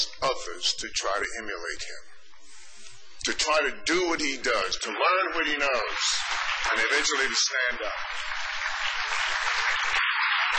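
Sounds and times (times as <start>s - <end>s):
speech: 0.0s - 2.2s, 3.2s - 8.3s
audience applauding: 5.7s - 10.5s.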